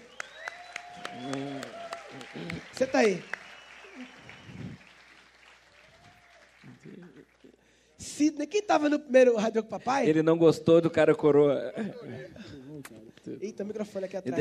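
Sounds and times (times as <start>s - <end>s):
audience applause: 0.0s - 7.6s
speech: 2.4s - 3.4s, 8.2s - 14.3s.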